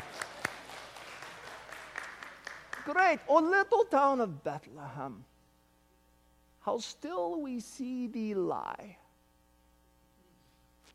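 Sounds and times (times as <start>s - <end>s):
audience applause: 0.0s - 2.9s
speech: 2.9s - 5.3s, 6.6s - 9.0s.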